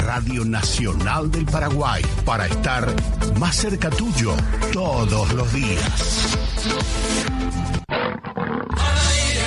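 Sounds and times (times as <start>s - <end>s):
speech: 0.1s - 7.7s
lion roaring: 7.8s - 9.3s.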